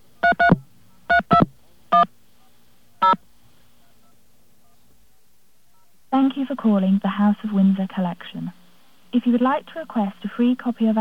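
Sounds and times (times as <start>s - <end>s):
telephone keypad touch-tone dialing beeps: 0.2s - 2.1s
speech: 6.5s - 10.9s.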